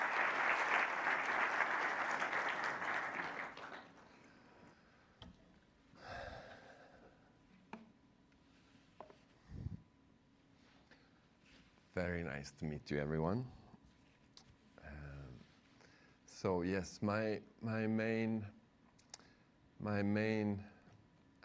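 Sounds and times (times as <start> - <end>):
audience applause: 0.0 - 4.4
speech: 12.0 - 13.6, 16.4 - 18.6, 19.8 - 20.7.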